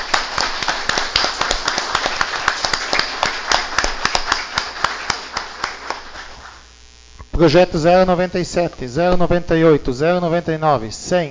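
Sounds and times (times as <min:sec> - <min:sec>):
group clapping hands: 0:00.0 - 0:06.6
speech: 0:07.4 - 0:11.3.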